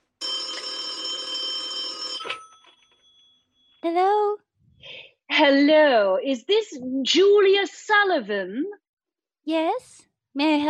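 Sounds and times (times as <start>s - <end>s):
old-style telephone bell ringing: 0.2s - 3.8s
speech: 3.9s - 4.4s, 5.4s - 8.8s, 9.5s - 10.6s.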